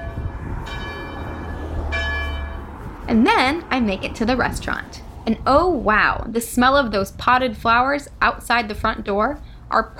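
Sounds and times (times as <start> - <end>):
church bells ringing: 0.0 - 2.8
speech: 3.1 - 9.9.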